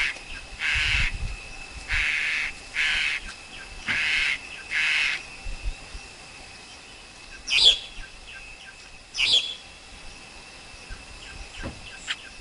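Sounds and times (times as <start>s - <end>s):
Black-collared Starling calling: 0.0s - 1.2s, 1.9s - 5.3s, 7.3s - 9.8s.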